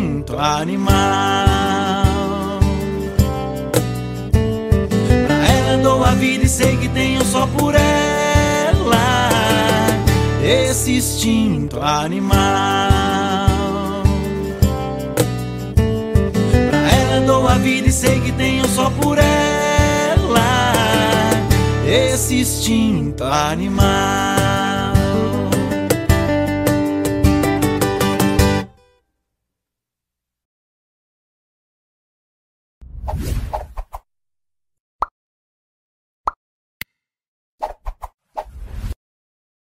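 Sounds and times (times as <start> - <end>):
acoustic music: 0.0 - 28.9.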